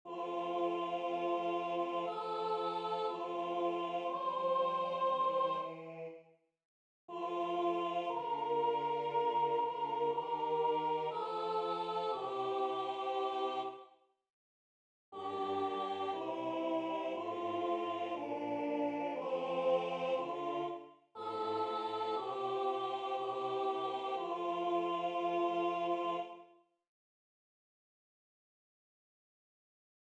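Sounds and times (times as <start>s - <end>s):
soprano singing: 0.1s - 5.8s, 7.1s - 13.8s, 15.2s - 26.3s.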